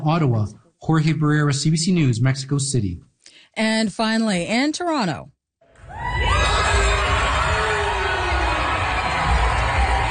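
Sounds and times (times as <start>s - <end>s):
speech: 0.0s - 5.4s
audience cheering for Polaris Prize winner: 5.7s - 10.1s.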